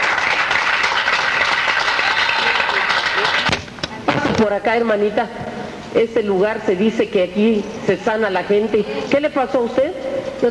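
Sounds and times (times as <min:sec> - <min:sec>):
audience applause: 0:00.0 - 0:03.6
speech: 0:04.4 - 0:10.5.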